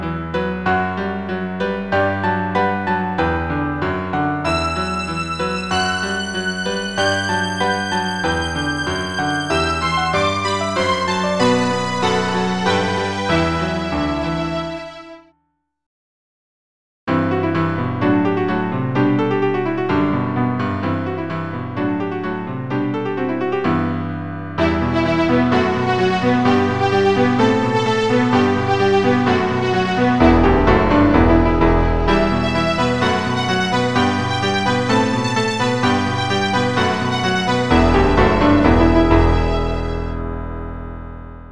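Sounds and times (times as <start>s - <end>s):
violin and piano sonata in E minor: 0.0s - 15.2s, 17.2s - 41.0s.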